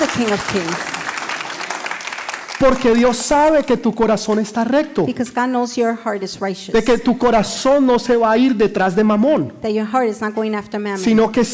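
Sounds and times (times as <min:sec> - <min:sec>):
speech: 0:00.0 - 0:00.9, 0:02.6 - 0:11.5
loud applause: 0:00.0 - 0:03.2.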